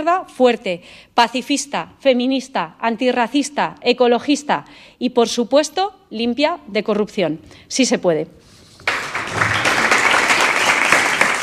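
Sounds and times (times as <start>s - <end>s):
speech: 0.0s - 8.5s
Podemos members applauding after Ione Belarra's speech at a political event: 8.8s - 11.4s.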